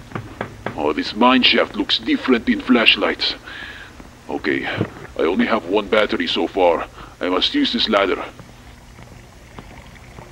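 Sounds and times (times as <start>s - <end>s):
speech: 0.8s - 3.7s, 4.3s - 8.4s
water splashing: 7.6s - 10.2s.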